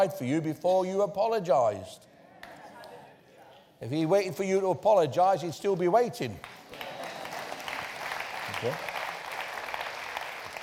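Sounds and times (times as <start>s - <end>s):
speech: 0.0s - 2.1s, 3.8s - 6.8s, 8.6s - 8.9s
audience applause: 6.4s - 10.6s.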